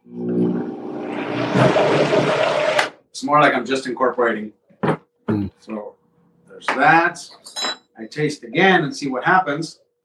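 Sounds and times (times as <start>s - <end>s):
blender mixing sesame seeds into dressing: 0.0s - 2.9s
speech: 3.3s - 4.6s, 6.6s - 9.8s.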